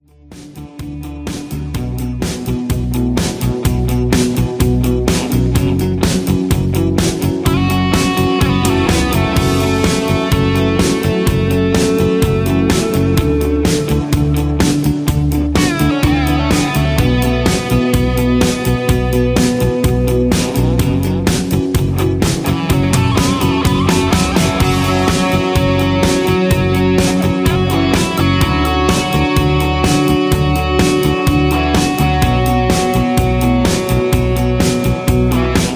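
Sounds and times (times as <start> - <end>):
instrumental music with no leads: 0.0 - 35.7.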